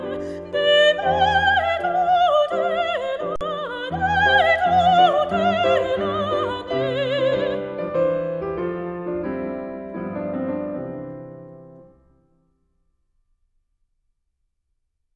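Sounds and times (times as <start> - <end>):
person singing: 0.0 - 8.2
piano: 0.0 - 12.5.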